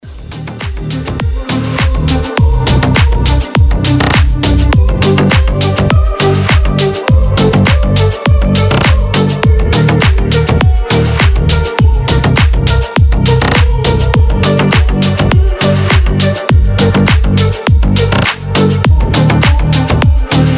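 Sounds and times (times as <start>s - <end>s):
techno music: 0.0s - 20.5s.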